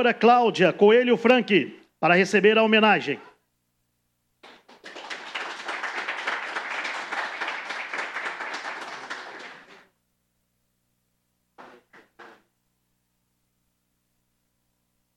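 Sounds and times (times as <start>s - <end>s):
speech: 0.0s - 3.3s
applause: 4.4s - 10.0s.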